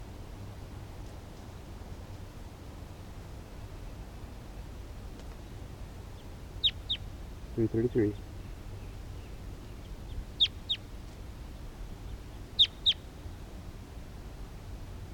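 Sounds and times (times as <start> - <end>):
wild bird calling in the distance: 6.2 - 7.1, 7.7 - 10.9, 12.0 - 13.2.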